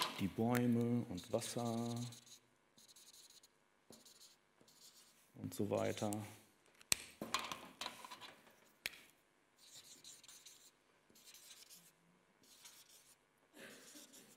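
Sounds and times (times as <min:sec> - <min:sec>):
speech: 0:00.2 - 0:02.2, 0:05.5 - 0:06.4
pen or marker strokes scratching and rubbing across paper: 0:01.2 - 0:05.2, 0:09.6 - 0:13.2, 0:13.7 - 0:14.3.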